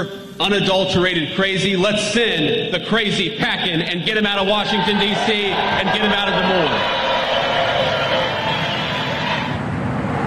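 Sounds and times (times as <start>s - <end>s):
speech: 0.0s - 7.1s
thunderous applause at a campaign rally: 4.1s - 10.2s.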